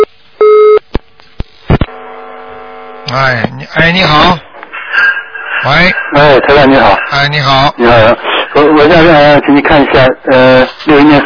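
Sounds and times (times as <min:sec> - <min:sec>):
telephone busy tone after a dropped call: 0:00.0 - 0:00.8
buzzing hum: 0:00.0 - 0:05.6
speech: 0:03.1 - 0:04.4, 0:05.6 - 0:11.2.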